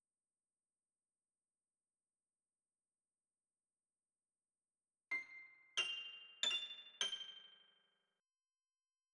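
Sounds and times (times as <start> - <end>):
piano: 5.1 - 7.7.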